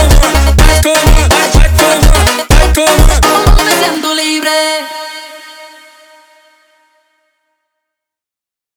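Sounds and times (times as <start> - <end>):
funk music: 0.0 - 4.4.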